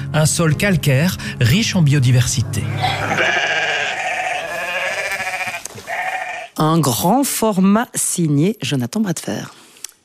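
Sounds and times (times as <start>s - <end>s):
speech: 0.2s - 3.4s, 6.6s - 9.6s
sheep bleating: 2.6s - 6.6s.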